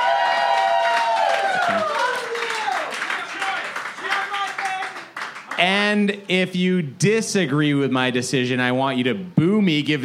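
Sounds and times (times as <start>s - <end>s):
crowd cheering: 0.0s - 5.8s
clapping: 0.4s - 5.6s
speech: 5.6s - 10.0s.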